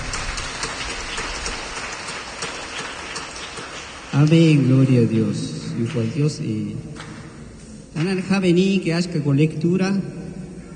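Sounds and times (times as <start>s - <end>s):
crowd applauding: 0.0s - 4.9s
speech: 4.2s - 7.0s, 8.0s - 10.2s.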